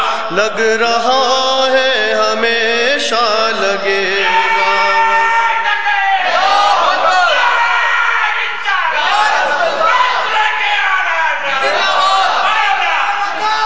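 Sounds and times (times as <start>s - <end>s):
speech: 0.3s - 5.1s
crowd chanting a slogan: 3.3s - 13.6s.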